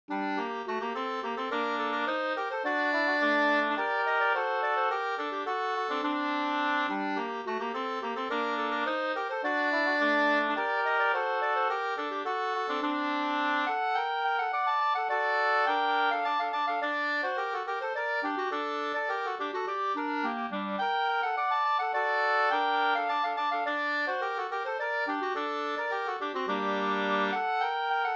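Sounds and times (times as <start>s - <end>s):
polska dance tune: 0.1s - 28.1s.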